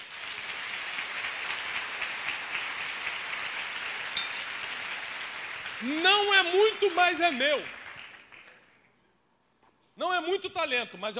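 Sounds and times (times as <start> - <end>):
audience applauding: 0.0 - 8.8
speech: 5.8 - 7.8, 10.0 - 11.1.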